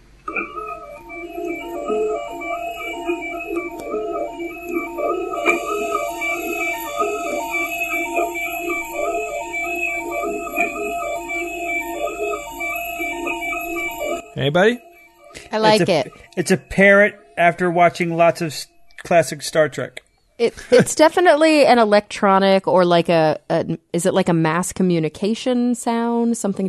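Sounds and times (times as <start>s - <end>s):
3D printer head moving with stepper motors: 0.3s - 18.2s
speech: 14.4s - 14.8s, 15.5s - 26.6s.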